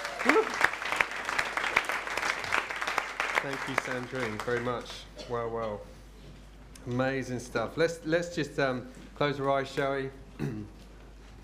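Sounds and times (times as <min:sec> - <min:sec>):
crowd clapping: 0:00.0 - 0:05.1
speech: 0:03.4 - 0:06.0, 0:06.8 - 0:10.8.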